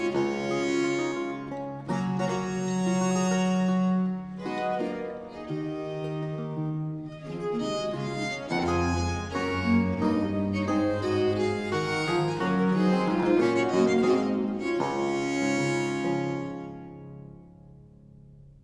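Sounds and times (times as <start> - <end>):
viols playing an early music suite in D minor: 0.0 - 17.2.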